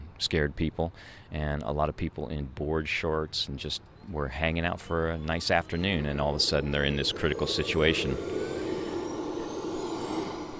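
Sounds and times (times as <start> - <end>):
speech: 0.2 - 8.6
Chinook helicopter engines starting up: 4.1 - 10.5.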